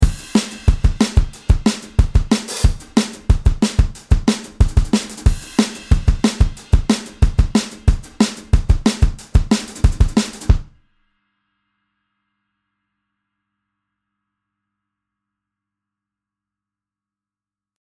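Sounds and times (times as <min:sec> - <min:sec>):
drums: 0:00.0 - 0:10.8.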